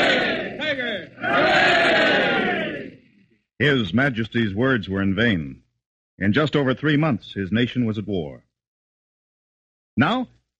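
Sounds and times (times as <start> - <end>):
crowd giving three cheers for the king and queen: 0.0 - 3.0
speech: 3.6 - 5.6, 6.2 - 8.4, 10.0 - 10.4.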